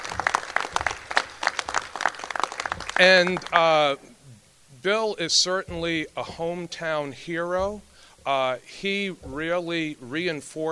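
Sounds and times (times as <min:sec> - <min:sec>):
audience applause: 0:00.0 - 0:03.9
speech: 0:03.0 - 0:04.1, 0:04.8 - 0:10.6.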